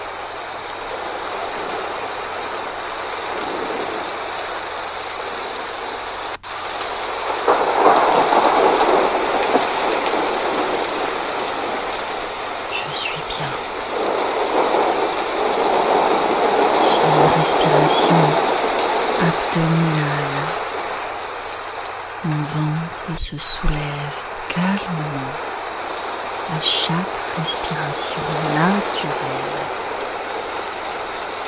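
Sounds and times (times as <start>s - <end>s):
rain: 0.0s - 31.4s
approaching thunderstorm: 7.2s - 12.2s, 13.8s - 17.3s.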